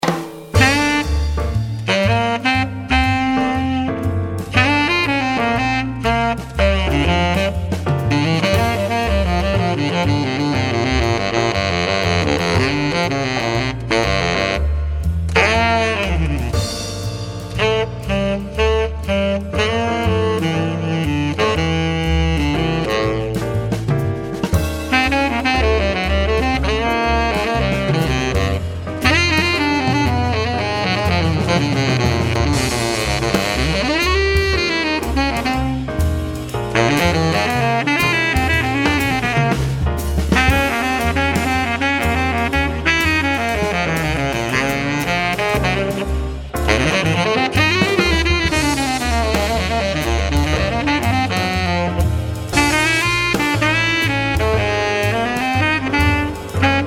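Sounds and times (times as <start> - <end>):
baritone saxophone solo: 0.5 - 56.8.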